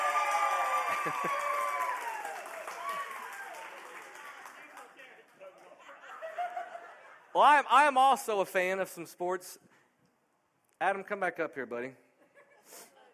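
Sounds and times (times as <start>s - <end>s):
crowd cheering and voices: 0.0s - 5.0s
audience hand clapping: 0.0s - 5.8s
laughter: 0.8s - 1.6s, 5.6s - 7.4s
speech: 1.0s - 1.4s, 7.4s - 9.7s, 10.8s - 12.0s.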